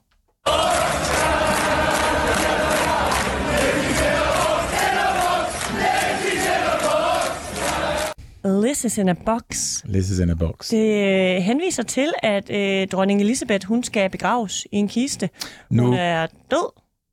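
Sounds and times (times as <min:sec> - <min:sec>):
football crowd singing in stadium in Dublin: 0:00.4 - 0:08.2
speech: 0:08.8 - 0:16.8.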